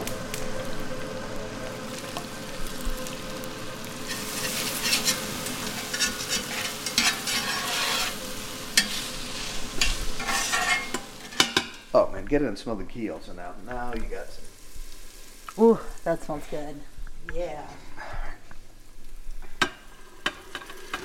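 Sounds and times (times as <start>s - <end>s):
onions frying in chicken fat: 0.0s - 21.0s
speech: 12.3s - 14.5s, 15.6s - 17.9s.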